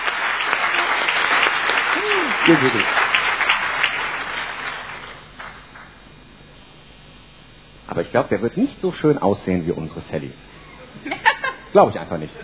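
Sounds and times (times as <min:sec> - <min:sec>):
audience applause: 0:00.0 - 0:06.0
speech: 0:02.4 - 0:03.0, 0:08.0 - 0:10.5, 0:11.7 - 0:12.4
laughter: 0:10.6 - 0:11.7.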